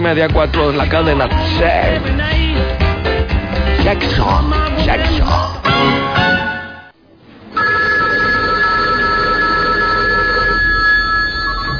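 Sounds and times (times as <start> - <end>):
speech: 0.0 - 2.8, 3.8 - 6.2
telephone ringing: 7.5 - 11.7.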